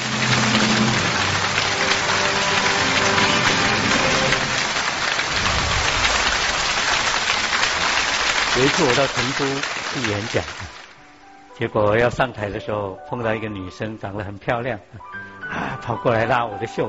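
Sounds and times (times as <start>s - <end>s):
audience applause: 0.0s - 11.0s
speech: 8.6s - 10.8s, 11.6s - 16.8s.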